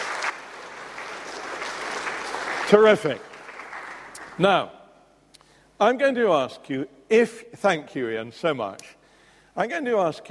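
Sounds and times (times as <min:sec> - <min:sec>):
audience applause: 0:00.0 - 0:04.4
speech: 0:02.7 - 0:03.3, 0:04.4 - 0:04.8, 0:05.8 - 0:09.0, 0:09.6 - 0:10.2.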